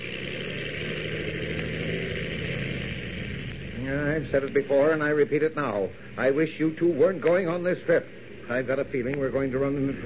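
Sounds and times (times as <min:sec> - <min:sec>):
Ottawa plane taking off: 0:00.0 - 0:06.4
speech: 0:03.9 - 0:10.0.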